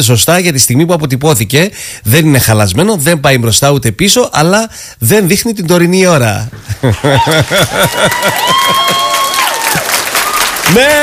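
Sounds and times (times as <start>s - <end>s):
speech: 0.0s - 9.9s, 10.7s - 11.0s
laughter: 6.6s - 9.3s
applause: 7.2s - 11.0s.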